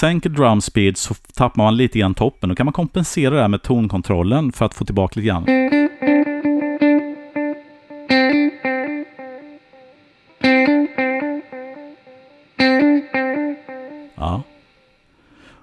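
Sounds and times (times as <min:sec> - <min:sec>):
speech: 0:00.0 - 0:05.8
guitar through delay at longest delay time: 0:05.5 - 0:15.0.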